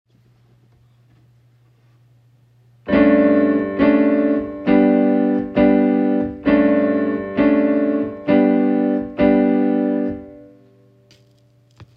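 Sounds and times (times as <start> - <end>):
music in Lydian mode: 2.8 - 11.0.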